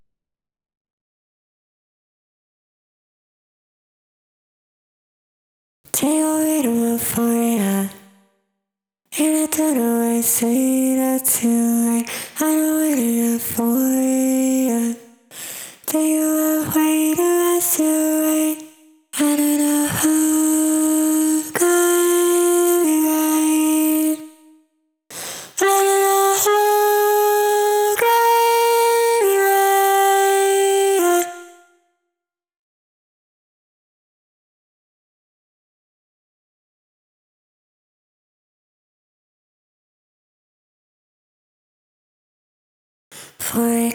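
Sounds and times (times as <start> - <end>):
vocals: 5.9 - 8.2, 9.1 - 31.8, 43.1 - 43.9.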